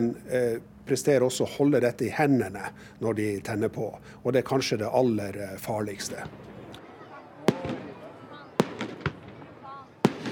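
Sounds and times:
speech: 0.0 - 6.5
murmur of voices: 5.5 - 10.3
fireworks rockets exploding: 6.1 - 10.3.

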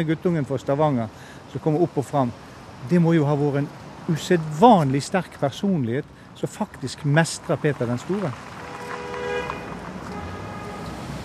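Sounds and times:
speech: 0.0 - 8.5
street traffic rumble: 0.0 - 11.2
car horn honk: 8.6 - 11.1.

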